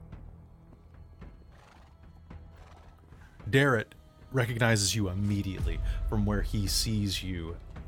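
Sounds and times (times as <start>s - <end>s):
hooves clip-clopping: 0.7s - 3.3s
horses neighing and whinnying: 1.5s - 3.4s
speech: 3.5s - 7.8s.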